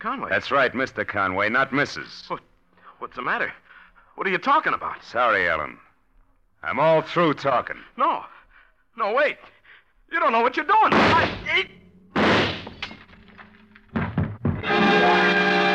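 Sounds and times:
speech: 0:00.0 - 0:05.9, 0:06.6 - 0:08.4, 0:09.0 - 0:12.3
man stumbling and falling forward: 0:10.9 - 0:15.6
glass smashing into fragments on the tabletop: 0:12.2 - 0:14.8.

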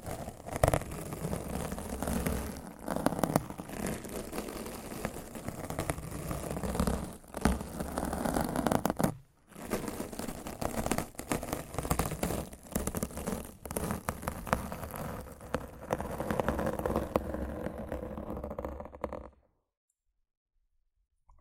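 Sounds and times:
rough scratching and brushing on a microphone: 0:00.0 - 0:19.4.

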